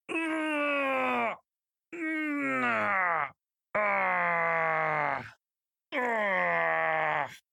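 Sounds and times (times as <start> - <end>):
person moaning: 0.1 - 7.5.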